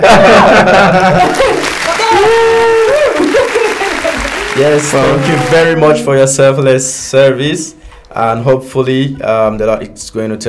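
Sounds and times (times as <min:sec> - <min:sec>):
laughter: 0:00.0 - 0:06.0
round of applause: 0:01.2 - 0:05.8
speech: 0:04.6 - 0:10.4.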